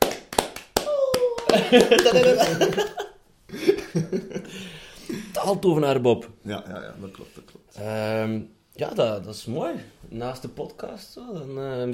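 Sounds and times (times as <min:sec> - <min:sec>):
applause: 0:00.0 - 0:03.0
laughter: 0:01.3 - 0:05.4
speech: 0:01.5 - 0:11.9.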